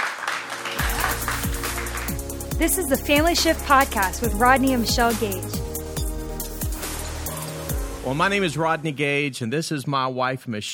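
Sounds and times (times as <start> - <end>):
live audience applause: 0.0 - 2.3
speech: 2.6 - 5.6, 8.1 - 10.7.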